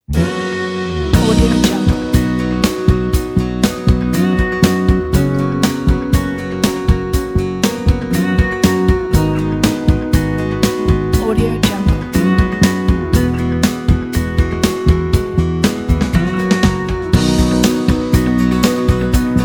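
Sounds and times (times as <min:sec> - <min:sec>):
romantic acoustic slide guitar: 0:00.1 - 0:19.4.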